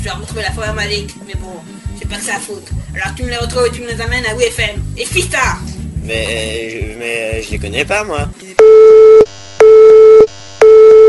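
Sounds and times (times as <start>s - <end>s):
speech: 0.0s - 8.6s
telephone busy signal beeps: 8.6s - 11.0s.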